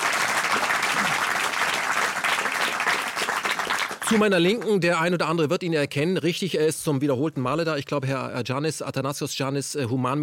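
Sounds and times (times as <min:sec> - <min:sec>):
audience applause: 0:00.0 - 0:04.7
speech: 0:04.1 - 0:10.2.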